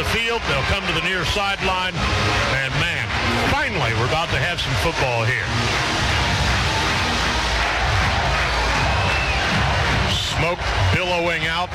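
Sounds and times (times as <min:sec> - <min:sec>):
stadium crowd cheering: 0:00.0 - 0:11.7
speech: 0:00.3 - 0:06.0, 0:10.4 - 0:11.7.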